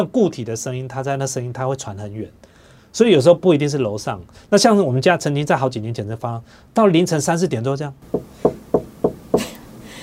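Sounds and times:
speech: 0:00.0 - 0:08.6
small hammer tapping: 0:08.1 - 0:09.4.

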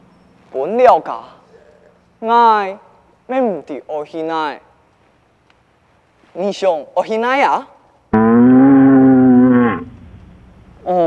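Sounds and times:
speech: 0:00.5 - 0:01.4, 0:02.2 - 0:04.7, 0:06.3 - 0:08.6, 0:10.9 - 0:11.0
ox mooing: 0:08.2 - 0:10.1.

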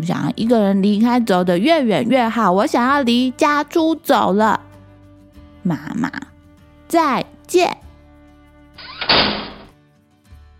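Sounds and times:
speech: 0:00.0 - 0:04.7, 0:05.6 - 0:06.3, 0:06.9 - 0:07.8
door shutting thud: 0:08.8 - 0:09.7.

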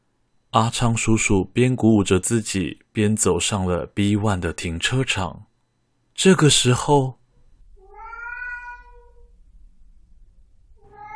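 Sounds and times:
speech: 0:00.5 - 0:05.5, 0:06.2 - 0:07.2
low rumbling hum: 0:07.2 - 0:08.2, 0:09.0 - 0:11.1
frightened cat meowing: 0:07.8 - 0:09.4, 0:10.8 - 0:11.1.

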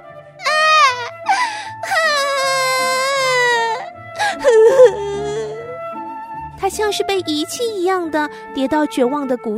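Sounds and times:
girl wailing and sobbing: 0:00.4 - 0:05.7
speech: 0:06.7 - 0:09.5.

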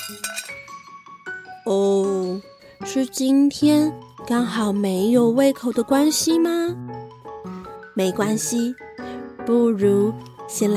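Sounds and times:
plate of cake knocked over clattering: 0:00.0 - 0:00.7
speech: 0:00.1 - 0:00.8, 0:01.6 - 0:06.9, 0:08.0 - 0:08.8, 0:09.5 - 0:10.7.

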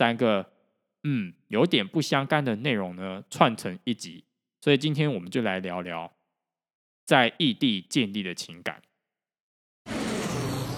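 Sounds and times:
speech: 0:00.0 - 0:06.2, 0:07.1 - 0:08.9
airplane flying: 0:09.9 - 0:10.7.

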